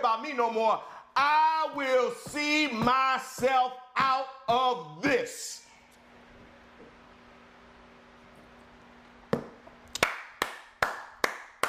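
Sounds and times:
speech: 0:00.0 - 0:05.6
hand claps: 0:09.4 - 0:11.6.

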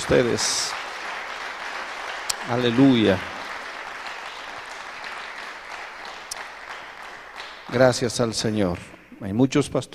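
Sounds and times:
speech: 0:00.0 - 0:00.8, 0:02.4 - 0:03.4, 0:07.7 - 0:09.9
applause: 0:00.0 - 0:09.0.

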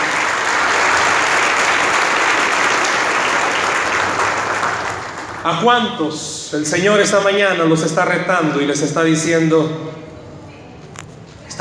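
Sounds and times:
applause: 0:00.0 - 0:05.6
speech: 0:05.4 - 0:10.0.

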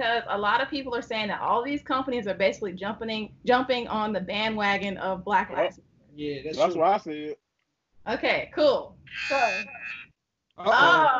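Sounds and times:
speech: 0:00.0 - 0:07.4, 0:08.0 - 0:10.0, 0:10.6 - 0:11.1
harsh electronic buzzer: 0:09.2 - 0:09.8.

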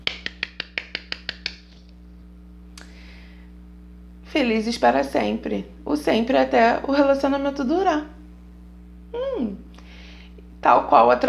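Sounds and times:
sharp hand claps: 0:00.0 - 0:01.9
speech: 0:04.3 - 0:08.2, 0:10.6 - 0:11.2.

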